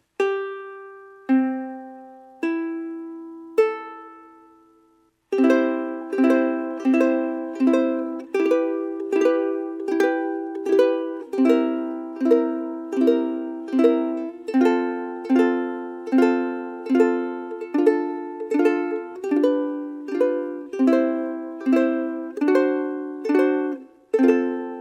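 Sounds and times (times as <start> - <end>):
ukulele: 0.0 - 24.7.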